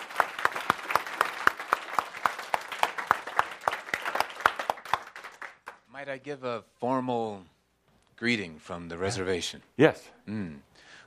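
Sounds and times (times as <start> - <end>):
audience applause: 0.0 - 5.8
speech: 6.0 - 7.6, 8.2 - 11.0.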